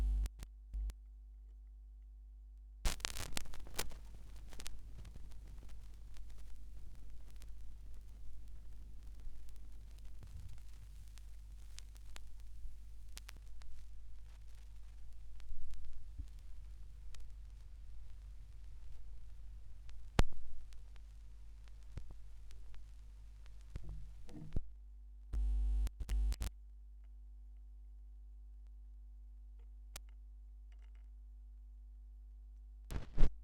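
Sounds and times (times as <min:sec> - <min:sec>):
vinyl record noise: 0:00.0 - 0:00.9, 0:02.9 - 0:24.4, 0:25.4 - 0:26.5, 0:32.9 - 0:33.3.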